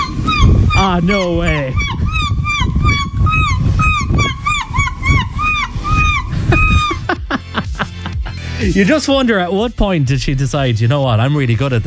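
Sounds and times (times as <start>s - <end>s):
human voice imitating seagull calls: 0.0s - 8.5s
speech: 0.8s - 1.9s, 8.6s - 11.8s
laughter: 6.3s - 9.1s.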